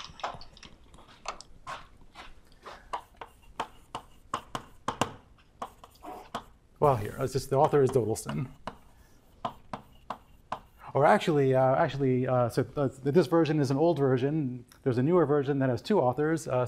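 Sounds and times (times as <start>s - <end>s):
tapping as someone writes down a textbook reference: 2.9s - 6.6s, 7.3s - 10.8s
speech: 6.9s - 8.6s, 11.0s - 16.6s.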